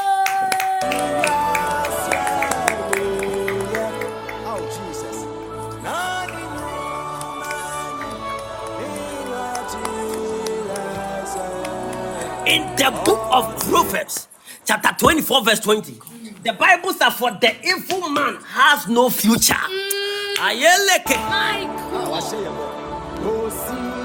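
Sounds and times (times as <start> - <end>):
church congregation clapping along: 0.0 - 14.2
music: 0.0 - 14.2, 21.0 - 24.0
speech: 12.8 - 22.8.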